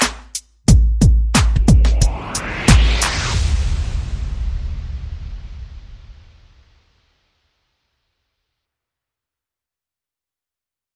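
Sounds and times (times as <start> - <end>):
percussion: 0.0 - 3.6.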